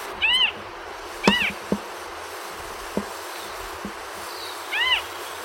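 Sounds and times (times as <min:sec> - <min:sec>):
Fiji harrier calling: 0:00.1 - 0:01.9, 0:04.5 - 0:05.3.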